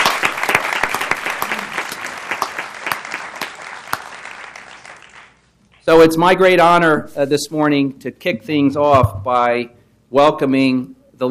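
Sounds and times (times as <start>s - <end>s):
applause for the Rose Festival Court at a City Hall ceremony: 0.0s - 5.8s
speech: 5.9s - 11.2s.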